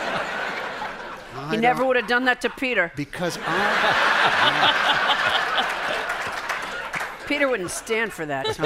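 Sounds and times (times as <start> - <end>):
chuckling and laughing voices: 0.0 - 8.6
speech: 1.4 - 5.1, 7.3 - 8.6
audience applause: 3.5 - 7.9.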